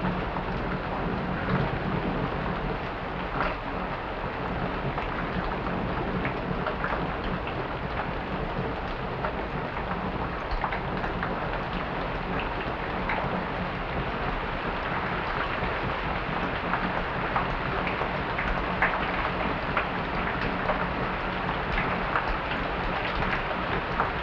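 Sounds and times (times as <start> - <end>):
rain: 0.0 - 24.2.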